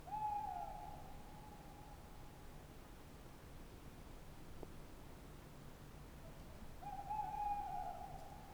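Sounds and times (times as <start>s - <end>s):
tawny owl hooting by the Dordogne at night: 0.1s - 1.0s, 6.8s - 8.4s.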